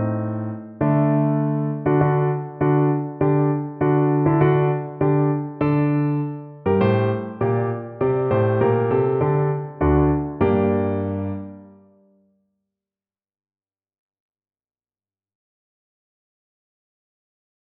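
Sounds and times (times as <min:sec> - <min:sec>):
piano: 0:00.0 - 0:12.2.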